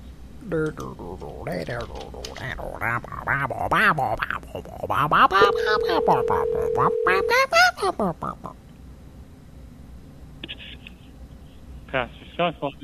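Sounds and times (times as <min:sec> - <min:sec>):
people talking: 0:00.4 - 0:08.6, 0:12.0 - 0:12.8
telephone dial tone while a call is being placed: 0:05.4 - 0:07.4.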